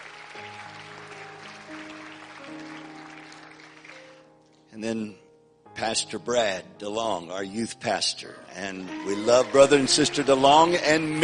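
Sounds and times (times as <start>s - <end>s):
audience clapping for their pastor: 0.0s - 4.3s, 8.8s - 11.2s
organ or keyboard chords: 0.0s - 11.2s
speech: 4.8s - 5.2s, 5.8s - 11.2s.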